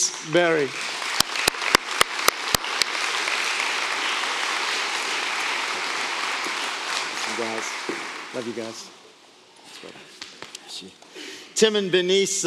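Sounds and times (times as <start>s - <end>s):
audience applause welcoming two speakers to the stage: 0.0s - 9.0s
speech: 0.2s - 0.9s, 7.4s - 9.0s, 9.8s - 10.1s, 10.8s - 11.0s, 11.6s - 12.4s.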